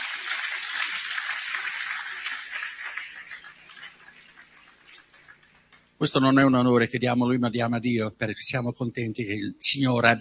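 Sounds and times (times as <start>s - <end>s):
audience applause: 0.0s - 5.5s
speech: 6.0s - 10.2s.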